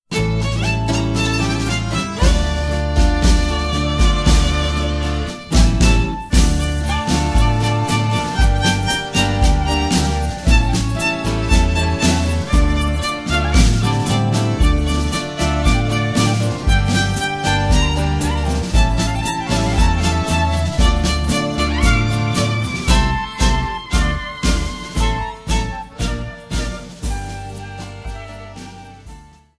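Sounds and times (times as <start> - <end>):
instrumental music: 0.1 - 29.5.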